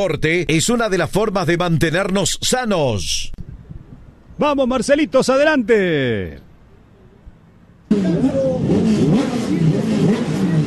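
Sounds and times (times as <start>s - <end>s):
speech: 0.0s - 3.4s, 4.4s - 6.5s, 7.9s - 9.4s
Turismo Carretera race car engines: 7.9s - 10.6s.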